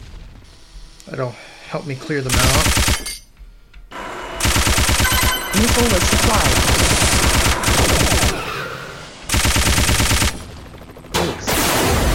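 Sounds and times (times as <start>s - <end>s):
speech: 1.1s - 3.2s, 5.6s - 7.2s
machine-gun fire in a shoot-'em-up video game: 2.3s - 3.2s, 4.4s - 8.6s, 9.3s - 12.0s.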